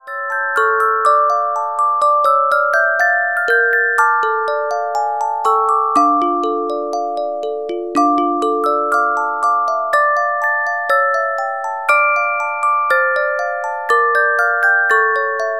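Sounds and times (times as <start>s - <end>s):
carillon music box melodies: 0.0s - 15.5s.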